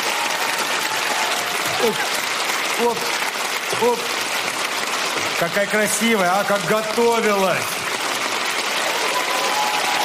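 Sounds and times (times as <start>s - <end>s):
audience applause: 0.0s - 10.0s
speech: 1.8s - 2.1s, 2.8s - 4.2s, 5.4s - 7.8s.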